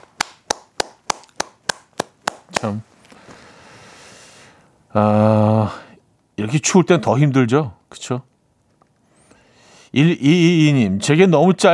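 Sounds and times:
hand claps: 0:00.0 - 0:02.8
speech: 0:02.6 - 0:03.0, 0:04.9 - 0:05.8, 0:06.5 - 0:08.3, 0:10.0 - 0:11.7.

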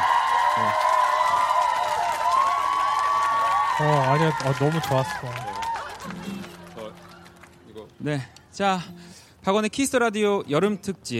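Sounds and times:
audience applause: 0:00.0 - 0:08.2
speech: 0:03.8 - 0:06.2, 0:08.0 - 0:11.1.

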